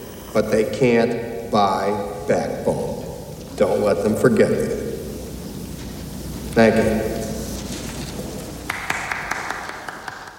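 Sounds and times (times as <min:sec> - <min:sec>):
speech: 0:00.4 - 0:03.0, 0:03.6 - 0:04.8, 0:06.6 - 0:07.1
one person applauding a speech: 0:08.7 - 0:10.3.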